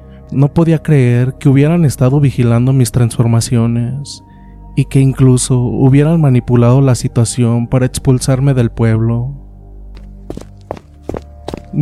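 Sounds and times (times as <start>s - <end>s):
speech: 0.3s - 9.4s
footsteps approaching a cabin: 10.0s - 11.8s.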